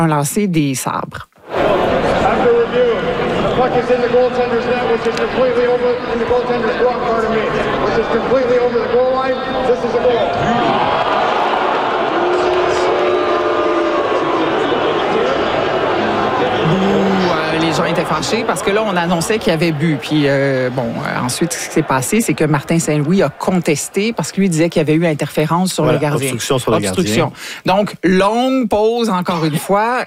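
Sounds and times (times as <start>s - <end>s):
speech: 0.0s - 1.3s, 2.2s - 11.2s, 17.7s - 30.0s
crowd outside arena roaring awaiting goal review: 1.4s - 25.2s.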